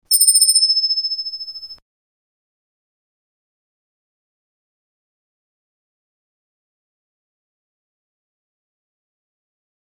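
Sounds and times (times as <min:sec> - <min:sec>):
coin: 0:00.1 - 0:01.8.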